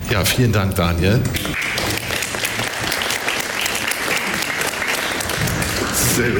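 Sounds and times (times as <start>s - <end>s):
speech: 0.1s - 1.6s, 6.2s - 6.3s
audience applause: 1.6s - 6.3s.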